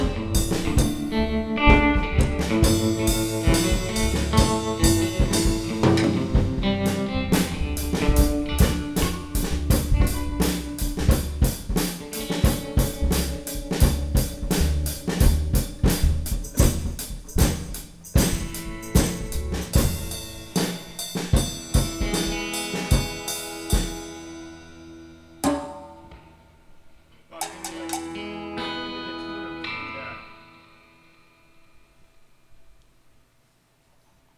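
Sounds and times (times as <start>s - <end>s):
jam session: 0.0s - 26.5s.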